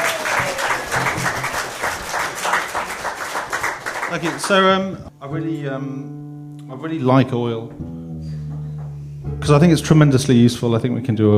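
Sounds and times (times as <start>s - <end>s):
audience applause: 0.0s - 4.8s
speech: 4.1s - 8.0s, 9.4s - 11.3s.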